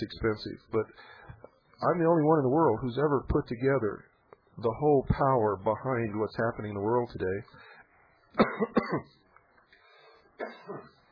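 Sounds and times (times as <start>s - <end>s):
speech: 0.0s - 7.7s, 8.4s - 9.2s, 10.4s - 11.0s
person coughing after something went down the wrong pipe: 8.4s - 9.2s, 10.4s - 11.0s.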